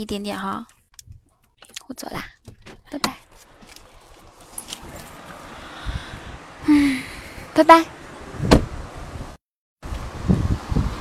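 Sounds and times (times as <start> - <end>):
speech: 0.0 - 0.8, 1.9 - 3.3, 7.6 - 8.0
strong wind buffeting microphone: 4.2 - 10.9.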